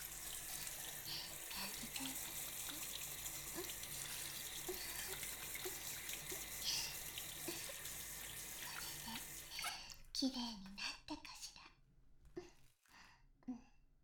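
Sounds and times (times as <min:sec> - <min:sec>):
shower water rinsing: 0:00.0 - 0:09.8
speech: 0:10.2 - 0:11.3.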